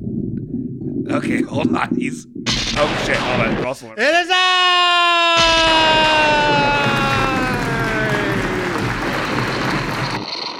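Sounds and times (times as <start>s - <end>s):
speech: 1.0s - 6.9s
audience applause: 5.6s - 10.3s.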